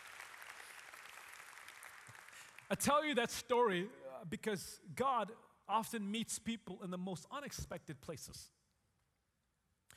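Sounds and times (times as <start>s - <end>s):
audience applause: 0.0s - 2.7s
speech: 2.7s - 8.6s.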